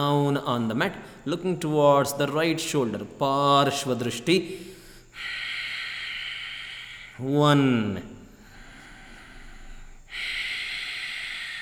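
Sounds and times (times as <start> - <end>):
speech: 0.0 - 5.4, 7.2 - 8.2
long steady exhale through the nose or mouth during a yoga sequence: 4.5 - 7.2, 8.3 - 11.6.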